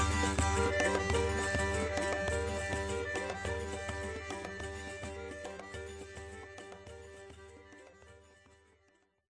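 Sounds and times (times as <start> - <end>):
fife playing: 0.0 - 5.7.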